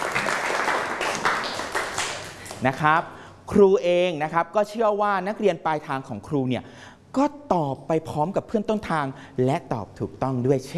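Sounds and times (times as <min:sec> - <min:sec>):
students clapping in a classroom: 0:00.0 - 0:02.7
speech: 0:02.6 - 0:10.7.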